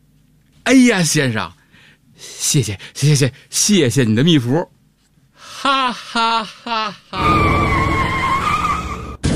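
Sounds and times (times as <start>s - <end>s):
speech: 0.7s - 1.6s, 2.2s - 4.8s, 5.6s - 7.7s
car skidding: 7.2s - 9.2s.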